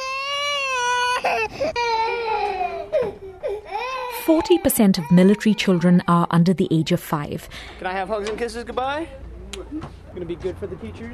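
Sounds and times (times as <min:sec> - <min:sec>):
baby crying: 0:00.0 - 0:06.3
speech: 0:01.2 - 0:03.1, 0:04.2 - 0:11.1.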